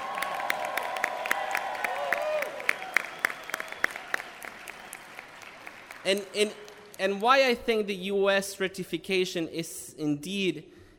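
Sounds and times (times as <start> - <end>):
audience applause: 0.0 - 7.0
speech: 6.0 - 10.8.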